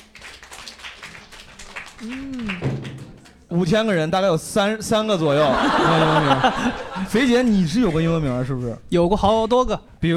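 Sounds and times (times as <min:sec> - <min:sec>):
few people clapping: 0:00.0 - 0:03.5
speech: 0:02.0 - 0:02.7, 0:03.5 - 0:10.1
laughter: 0:05.3 - 0:07.5.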